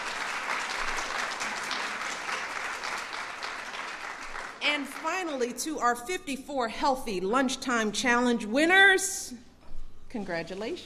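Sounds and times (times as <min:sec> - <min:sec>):
audience applause: 0:00.0 - 0:05.2
speech: 0:04.6 - 0:09.5, 0:10.1 - 0:10.8.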